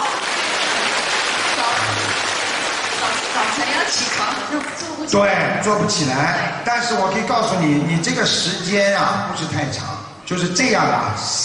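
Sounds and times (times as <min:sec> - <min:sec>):
crowd applauding: 0:00.0 - 0:04.8
speech: 0:03.9 - 0:11.4.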